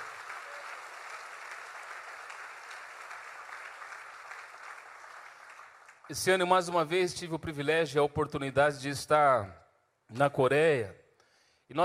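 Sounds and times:
applause: 0.0s - 6.8s
speech: 6.1s - 11.0s.

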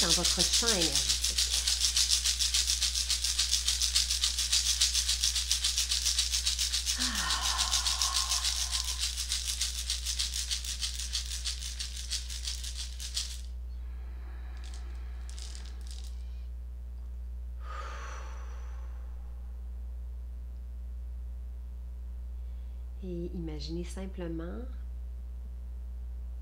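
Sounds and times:
shamanic rattle being shaken: 0.0s - 13.6s, 14.3s - 16.3s
faint low hum: 0.0s - 26.4s
speech: 0.1s - 1.2s, 23.6s - 24.8s.

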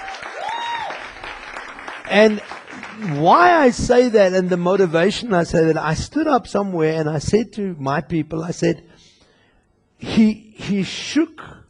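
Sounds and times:
audience applause: 0.0s - 5.1s
speech: 2.1s - 8.9s, 10.1s - 11.6s.

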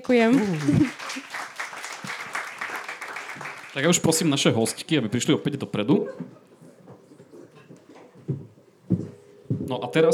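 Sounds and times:
speech: 0.0s - 1.2s, 3.8s - 6.4s, 9.7s - 10.1s
audience applause: 0.0s - 4.8s.

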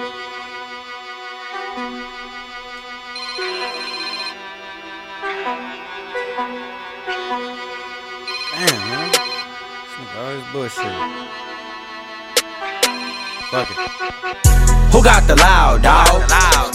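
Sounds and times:
phone ringtone with bright electronic melody: 3.1s - 10.3s, 10.9s - 14.5s
speech: 10.7s - 11.4s, 13.5s - 16.5s.

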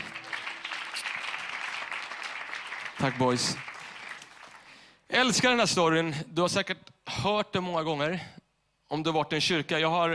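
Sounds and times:
audience applause: 0.0s - 4.9s
speech: 3.0s - 3.7s, 5.2s - 10.1s.

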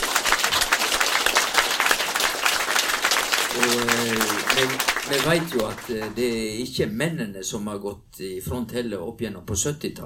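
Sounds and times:
audience applause: 0.0s - 6.6s
speech: 4.6s - 10.0s.

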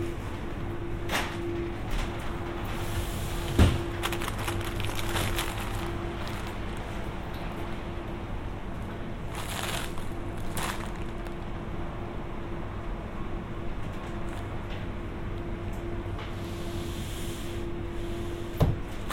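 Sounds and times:
steady hum in a grocery store: 0.0s - 18.5s
clatters and rustles: 3.4s - 7.5s, 9.3s - 11.6s.

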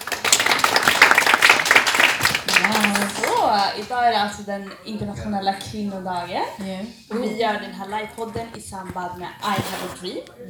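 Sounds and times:
audience applause: 0.0s - 4.1s
speech: 3.7s - 10.4s.

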